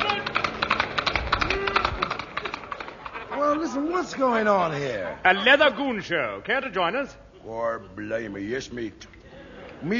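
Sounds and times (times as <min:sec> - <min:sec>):
horse hooves clip-clopping: 0:00.0 - 0:03.3
speech: 0:03.5 - 0:09.2, 0:09.8 - 0:09.9.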